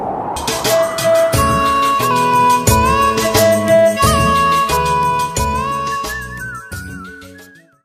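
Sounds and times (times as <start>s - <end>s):
patriotic flute ringtone: 0.5s - 7.8s.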